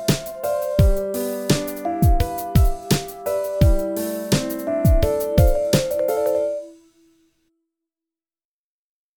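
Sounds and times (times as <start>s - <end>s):
solo piano: 0.0s - 7.0s.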